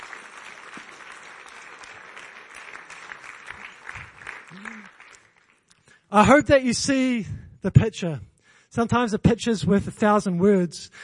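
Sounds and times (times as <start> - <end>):
audience applause for contestants: 0.0 - 5.7
speech: 6.1 - 11.0.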